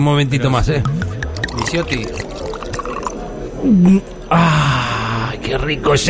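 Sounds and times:
speech: 0.0s - 2.3s, 3.6s - 4.8s, 5.5s - 6.0s
liquor pouring into a glass: 1.1s - 3.5s.

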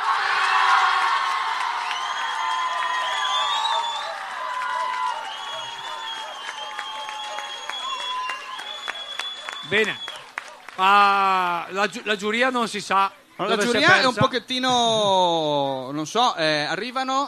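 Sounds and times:
audience applause: 0.0s - 11.3s
speech: 9.7s - 10.0s, 10.8s - 17.2s.

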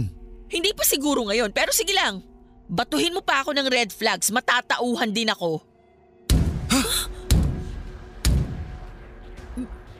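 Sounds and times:
speech: 0.0s - 5.7s
knocking on a door: 7.3s - 8.7s.

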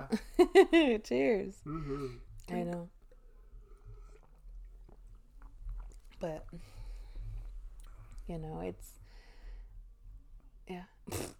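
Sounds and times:
low hum: 0.0s - 11.3s
speech: 0.1s - 3.0s, 6.2s - 6.7s, 8.3s - 9.0s, 10.7s - 11.3s
person making a mouth fart noise: 11.0s - 11.3s.

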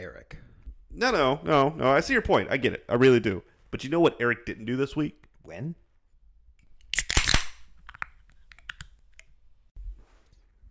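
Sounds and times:
speech: 0.0s - 5.8s
drink can being opened: 6.8s - 8.9s.

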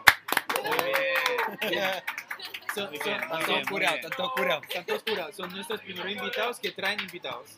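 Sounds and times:
small supporting group clapping: 0.0s - 7.5s
voices whooping and cheering: 0.5s - 4.6s
laughter: 0.5s - 7.0s
speech: 1.5s - 2.2s, 2.8s - 7.5s.

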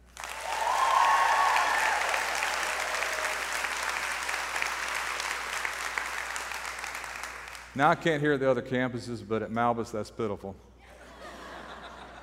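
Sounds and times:
audience applause: 0.0s - 7.7s
scattered cheers: 0.2s - 3.8s
speech: 7.8s - 10.7s
laughter: 10.9s - 12.2s.

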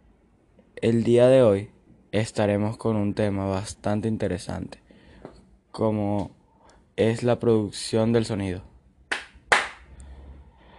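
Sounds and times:
speech: 0.8s - 4.8s, 5.8s - 6.4s, 7.0s - 8.7s
applause: 9.1s - 9.8s.

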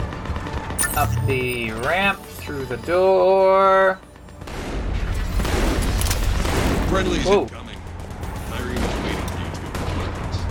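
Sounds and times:
speech: 1.0s - 4.1s, 6.9s - 7.6s
gunfire in a video game: 4.4s - 7.3s, 8.6s - 10.3s.

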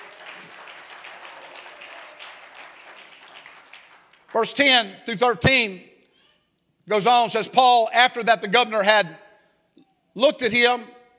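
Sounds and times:
audience clapping hands to praise God: 0.0s - 4.6s
speech: 4.4s - 5.9s, 6.9s - 9.2s, 10.2s - 11.0s.

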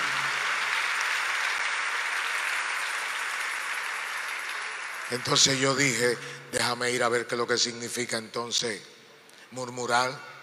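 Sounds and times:
audience applause: 0.0s - 5.9s
speech: 5.1s - 10.3s.

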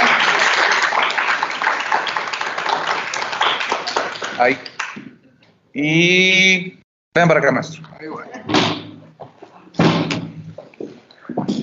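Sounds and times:
audience applause: 0.0s - 5.0s
speech: 4.4s - 4.8s, 5.8s - 8.8s.

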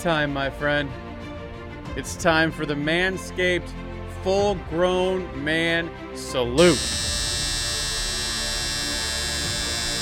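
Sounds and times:
speech: 0.0s - 1.1s, 1.9s - 7.2s
electric body hair trimmer buzzing: 6.6s - 9.9s.

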